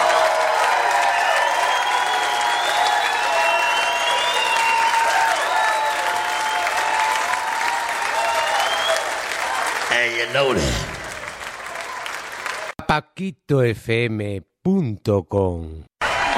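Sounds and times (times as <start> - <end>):
audience round of applause: 0.0 - 12.8, 16.0 - 16.3
speech: 10.2 - 10.9, 12.9 - 16.3.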